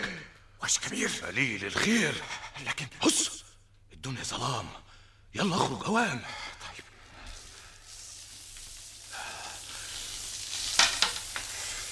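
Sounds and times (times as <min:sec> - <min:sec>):
speech: 0:00.7 - 0:03.4, 0:04.0 - 0:06.4
rain falling: 0:07.2 - 0:11.9.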